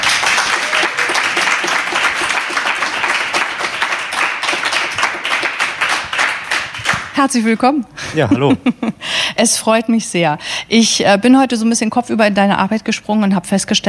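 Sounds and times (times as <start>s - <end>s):
audience applause: 0.0s - 7.2s
speech: 7.2s - 13.8s.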